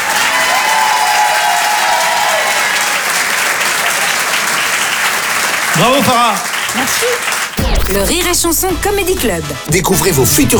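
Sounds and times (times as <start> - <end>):
audience applause: 0.0 - 7.6
speech: 5.8 - 10.5.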